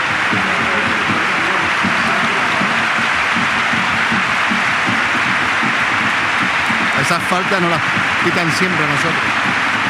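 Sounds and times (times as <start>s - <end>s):
large stadium crowd applause, standing ovation: 0.0s - 9.8s
speech: 7.1s - 9.5s.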